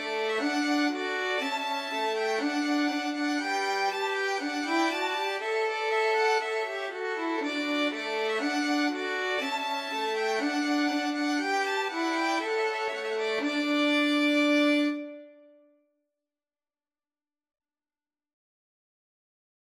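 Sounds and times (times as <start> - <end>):
violin trio: 0.0 - 15.5.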